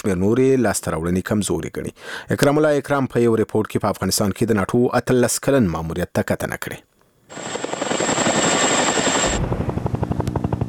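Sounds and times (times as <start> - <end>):
speech: 0.0 - 7.5
NATO military helicopter engine whine over Afghanistan: 7.3 - 10.6.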